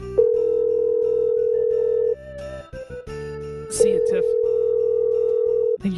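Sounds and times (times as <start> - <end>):
telephone ringing tone on an outgoing call: 0.2 - 2.2, 3.7 - 5.8.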